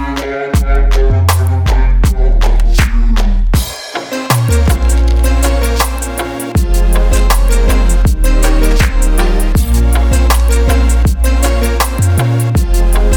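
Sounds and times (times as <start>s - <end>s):
bass boxing: 0.0s - 3.7s, 4.3s - 13.1s.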